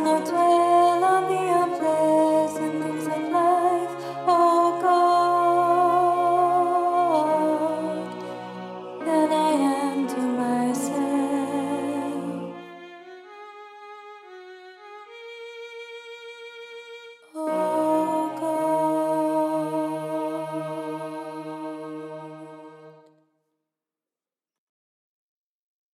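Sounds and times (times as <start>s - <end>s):
soprano and alto choir singing choral music: 0.0s - 13.0s, 17.4s - 23.1s.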